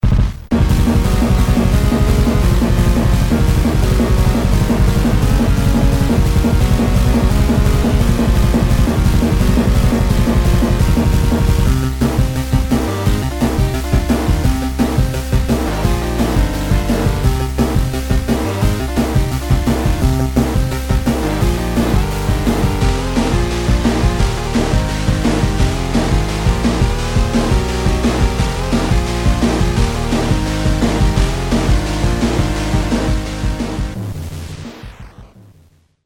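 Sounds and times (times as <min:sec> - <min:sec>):
NES chiptune music made in Famitracker: 0:00.1 - 0:35.3.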